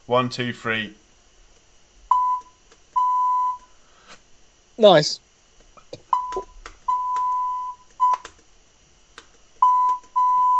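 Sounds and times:
speech: 0:00.1 - 0:01.0, 0:04.8 - 0:05.2
beeping like Morse code: 0:02.1 - 0:03.6, 0:06.1 - 0:08.2.

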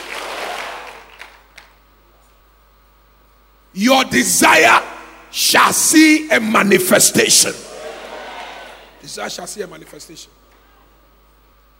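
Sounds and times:
audience clapping hands: 0:00.0 - 0:01.8
speech: 0:03.8 - 0:07.7, 0:09.0 - 0:10.4.

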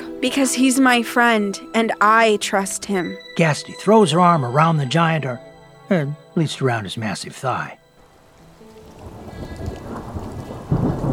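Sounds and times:
speech: 0:00.2 - 0:07.8
steady rain hiss in a thunderstorm sound effect: 0:08.0 - 0:11.1
rolling thunder in a thunderstorm sound effect: 0:08.4 - 0:11.1.

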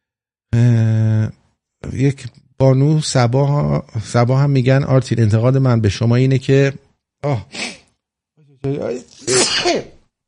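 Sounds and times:
speech: 0:02.0 - 0:07.8, 0:08.6 - 0:10.0
person sneezing: 0:07.4 - 0:07.9, 0:09.1 - 0:10.0.

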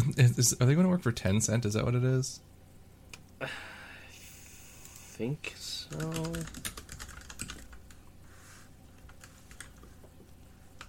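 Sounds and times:
speech: 0:00.2 - 0:02.5, 0:03.4 - 0:03.7, 0:05.2 - 0:06.7
typing on a computer keyboard: 0:05.9 - 0:08.0, 0:09.1 - 0:09.9.

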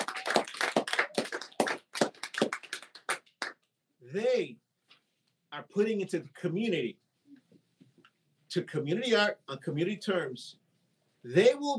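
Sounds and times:
audience applause: 0:00.0 - 0:03.5
speech: 0:04.1 - 0:04.6, 0:05.5 - 0:07.0, 0:08.5 - 0:10.6, 0:11.2 - 0:11.7.

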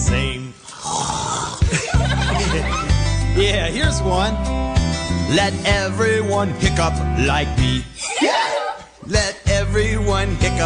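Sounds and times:
person imitating snoring: 0:00.6 - 0:01.7
laughter: 0:01.6 - 0:03.2, 0:08.0 - 0:09.0
speech: 0:03.4 - 0:04.7, 0:05.3 - 0:08.4, 0:09.1 - 0:10.6.

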